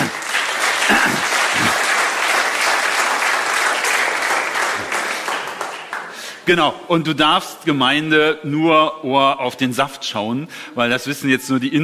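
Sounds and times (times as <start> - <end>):
audience applause: 0.0 - 6.4
speech: 6.5 - 11.8.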